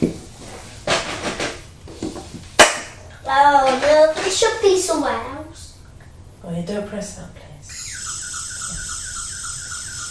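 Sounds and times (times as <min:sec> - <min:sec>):
speech: 0:03.3 - 0:05.4, 0:06.5 - 0:07.8
toy police car siren wailing: 0:07.7 - 0:10.0.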